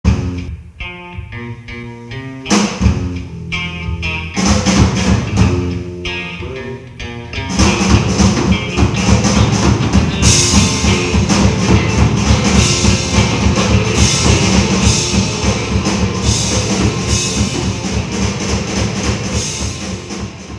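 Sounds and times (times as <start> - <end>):
funk music: 0.0 - 20.5.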